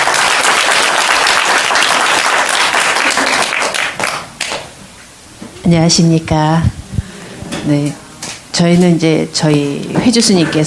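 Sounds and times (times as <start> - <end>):
audience applause: 0.0 - 4.6
speech: 5.6 - 6.8, 7.6 - 8.0, 8.6 - 10.6.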